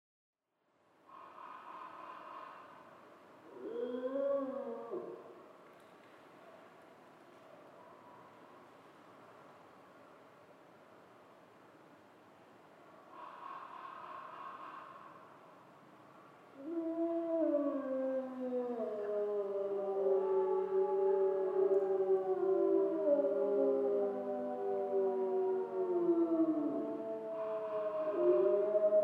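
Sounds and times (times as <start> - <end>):
grey wolves howling in chorus in Schorfheide: 3.4 - 5.4, 16.6 - 29.0.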